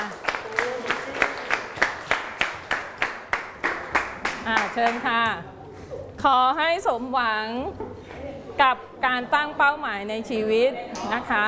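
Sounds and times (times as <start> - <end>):
students applauding: 0.0 - 5.0
speech: 4.5 - 5.6, 6.2 - 7.9, 8.6 - 11.4.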